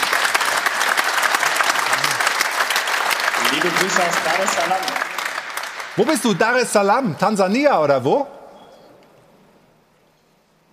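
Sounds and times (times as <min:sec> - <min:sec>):
audience applause: 0:00.0 - 0:07.4
speech: 0:03.6 - 0:05.0, 0:06.0 - 0:08.4.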